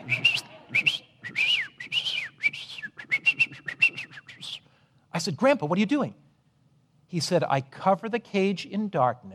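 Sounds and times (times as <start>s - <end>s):
person whistling imitating canary song: 0.0s - 4.6s
speech: 5.2s - 6.2s, 7.1s - 9.3s.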